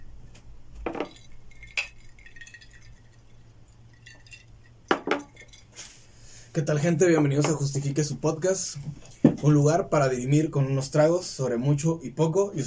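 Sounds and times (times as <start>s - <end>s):
low steady hum: 0.0s - 12.6s
glasses clinking in a toast: 0.9s - 5.8s
speech: 6.6s - 12.6s.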